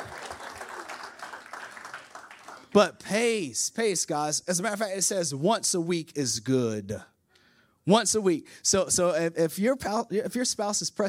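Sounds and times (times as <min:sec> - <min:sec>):
audience applause: 0:00.0 - 0:02.8
speech: 0:02.7 - 0:07.1, 0:07.9 - 0:11.0.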